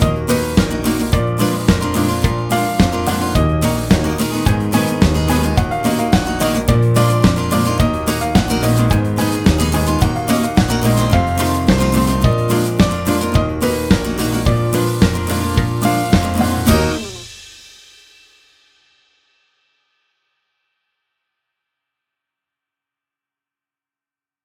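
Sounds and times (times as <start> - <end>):
backing track: 0.0 - 17.4.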